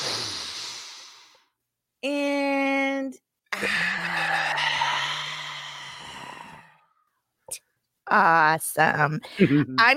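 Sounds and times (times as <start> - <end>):
group taking a deep breath during a relaxation exercise: 0.0 - 1.4, 3.6 - 7.0
speech: 2.0 - 2.2, 3.1 - 4.2, 8.1 - 9.9.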